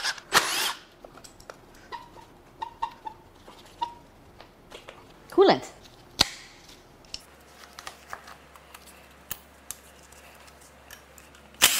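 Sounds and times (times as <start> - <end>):
power tool zipping bolts out of a rusty vehicle's engine bay: 0.0 - 0.8, 11.6 - 11.7
speech: 5.4 - 5.7.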